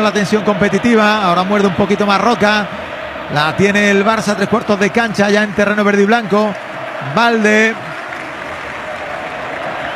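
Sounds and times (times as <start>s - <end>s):
speech: 0.0s - 7.9s
large stadium crowd applauding a substituted player: 0.0s - 9.9s.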